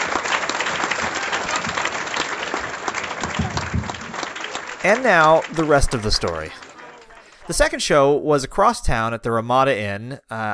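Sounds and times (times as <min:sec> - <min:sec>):
audience applause welcoming a comedian: 0:00.0 - 0:08.2
speech: 0:04.8 - 0:06.6, 0:07.5 - 0:10.5.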